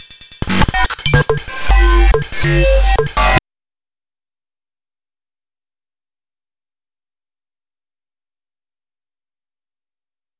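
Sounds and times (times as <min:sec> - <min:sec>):
glitch sounds: 0:00.1 - 0:03.4.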